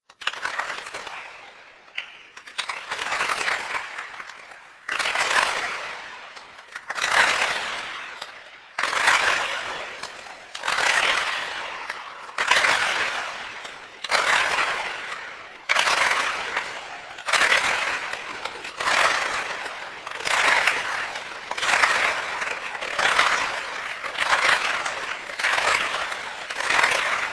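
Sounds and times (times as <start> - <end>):
applause: 0.1 - 27.3.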